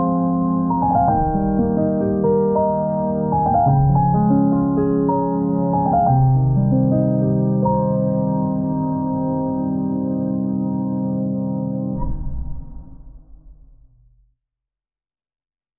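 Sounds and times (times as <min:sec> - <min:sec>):
peaceful lounge piano: 0:00.0 - 0:12.6.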